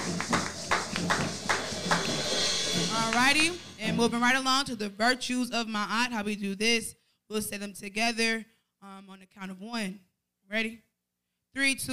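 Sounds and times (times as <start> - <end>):
hand clapping: 0.0 - 3.6
speech: 3.2 - 10.9, 11.6 - 11.9.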